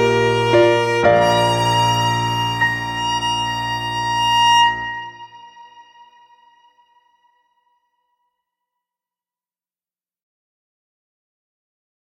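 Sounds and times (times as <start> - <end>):
music piece: 0.0 - 7.4.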